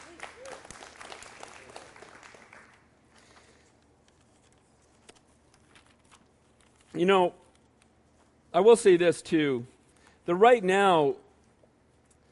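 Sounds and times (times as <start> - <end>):
audience applause: 0.0 - 2.9
speech: 7.0 - 7.4, 8.5 - 9.7, 10.3 - 11.2.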